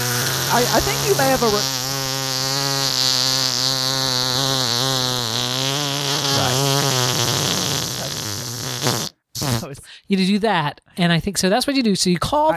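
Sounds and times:
sustained farting noise: 0.0 - 9.7
speech: 0.5 - 1.8, 10.1 - 12.5.

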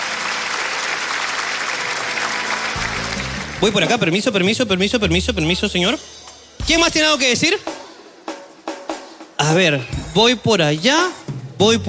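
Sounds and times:
crowd clapping: 0.0 - 5.1
speech: 3.6 - 7.7, 9.4 - 11.8.

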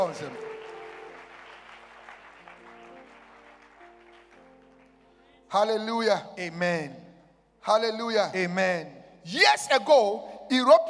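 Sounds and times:
speech: 0.0 - 0.5, 5.5 - 7.0, 7.6 - 10.8
crowd clapping: 0.0 - 5.3.

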